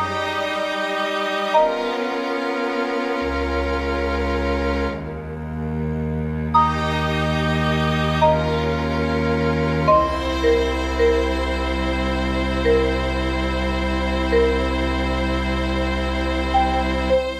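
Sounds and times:
marimba and strings playing: 0.0 - 5.1, 6.5 - 17.3.

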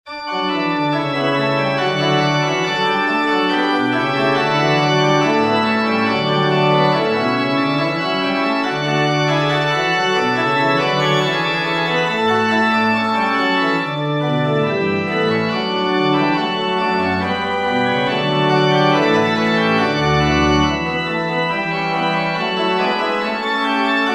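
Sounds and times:
organ chorale: 0.1 - 24.1.

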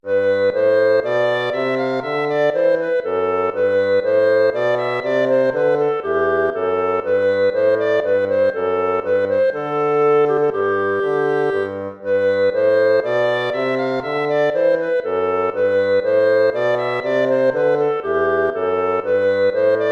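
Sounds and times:
baroque minuet: 0.0 - 19.9.

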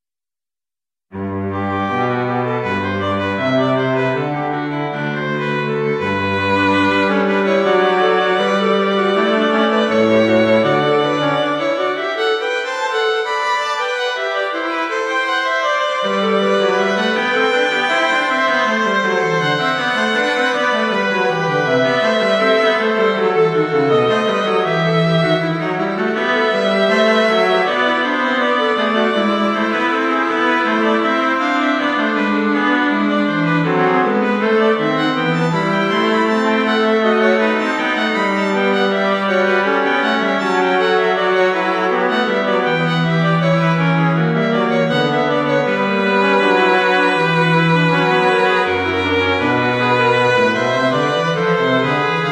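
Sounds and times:
strings: 1.2 - 52.3.

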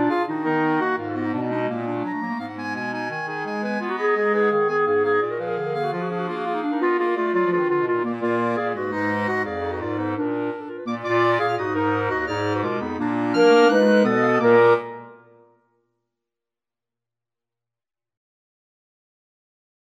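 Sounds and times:
klezmer music: 0.0 - 15.5.

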